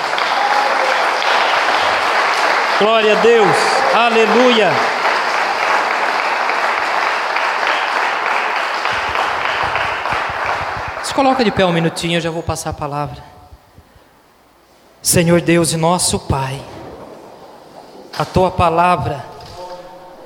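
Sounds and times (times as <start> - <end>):
audience applause: 0.0 - 12.0
speech: 2.8 - 5.0, 11.2 - 13.4, 15.0 - 16.8, 18.2 - 19.3.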